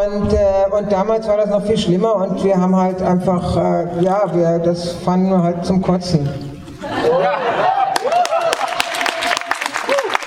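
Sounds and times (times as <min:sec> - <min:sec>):
speech: 0:00.0 - 0:07.7
laughter: 0:06.7 - 0:10.1
audience applause: 0:07.6 - 0:10.2.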